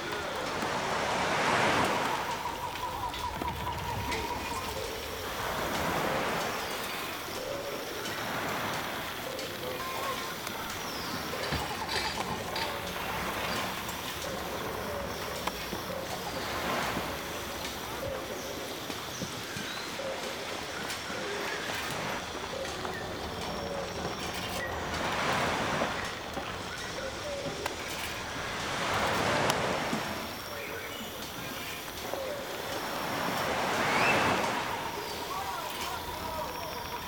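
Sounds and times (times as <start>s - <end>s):
island village ambience: 0.0s - 37.0s.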